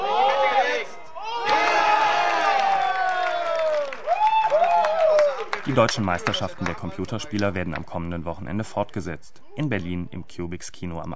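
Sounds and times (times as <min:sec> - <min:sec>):
crowd cheering at gaming tournament: 0:00.0 - 0:07.5
speech: 0:05.7 - 0:11.1.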